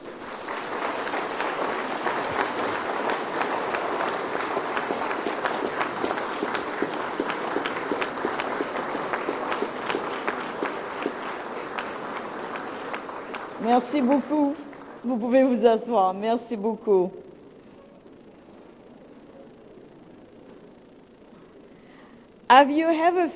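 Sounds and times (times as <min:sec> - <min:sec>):
graduates giving a big round of applause: 0:00.0 - 0:15.4
speech: 0:13.8 - 0:17.2, 0:22.5 - 0:23.3.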